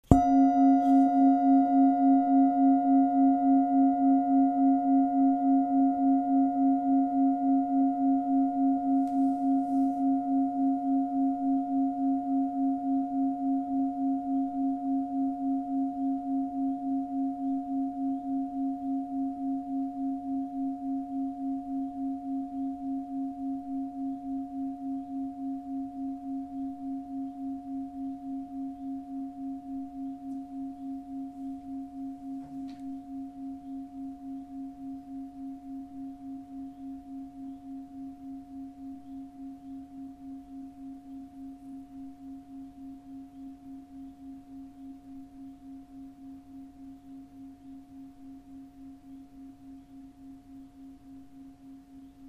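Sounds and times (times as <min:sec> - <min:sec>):
planet bowl: 0:00.0 - 0:52.2.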